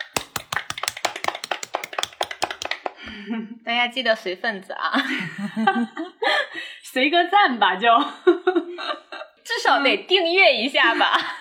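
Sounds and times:
hands clapping: 0.0s - 2.9s
speech: 3.0s - 8.3s, 9.7s - 11.3s.

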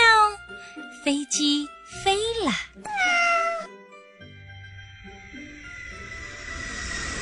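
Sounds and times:
speech: 1.0s - 3.2s
kittens meowing: 2.9s - 3.7s.

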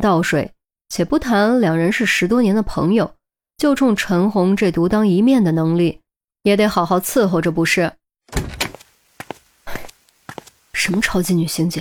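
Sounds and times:
speech: 0.0s - 8.4s, 10.8s - 11.7s
door being closed: 8.3s - 8.8s.

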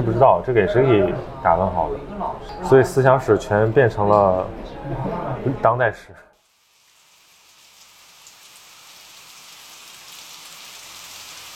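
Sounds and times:
speech: 0.0s - 6.3s
steady rain falling: 6.4s - 11.5s.

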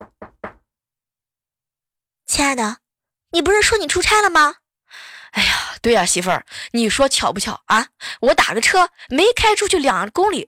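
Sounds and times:
knocking on a door: 0.0s - 0.6s
speech: 2.4s - 10.4s.

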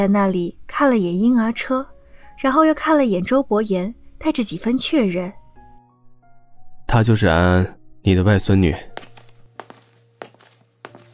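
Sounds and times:
speech: 0.0s - 5.4s, 6.9s - 9.1s
slow soft footsteps walking toward a baby stroller: 8.9s - 11.1s.

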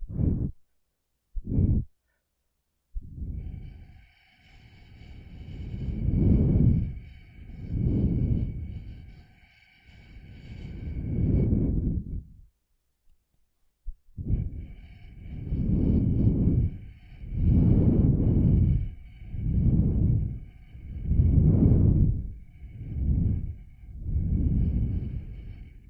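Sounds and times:
breath blown through a straw in soft airy puffs: 0.0s - 0.6s, 1.4s - 1.9s, 3.0s - 12.4s, 14.2s - 25.8s.

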